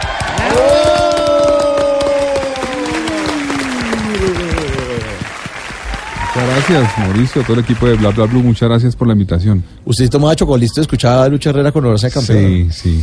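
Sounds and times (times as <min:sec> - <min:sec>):
strong audience applause: 0:00.0 - 0:08.6
speech: 0:06.7 - 0:13.0.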